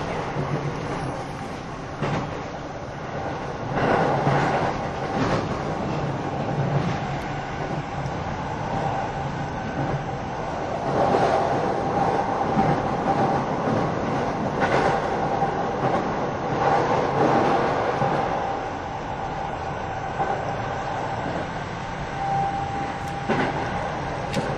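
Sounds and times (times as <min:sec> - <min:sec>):
train running: 0:00.0 - 0:24.5
faint thin whine: 0:22.0 - 0:24.5.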